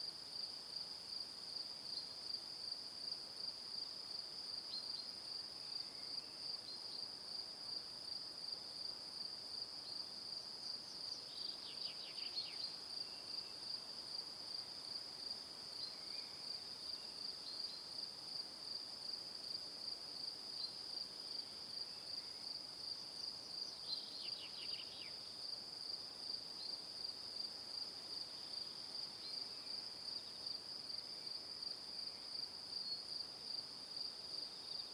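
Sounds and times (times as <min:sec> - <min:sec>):
evening crickets chirping: 0:00.1 - 0:34.9.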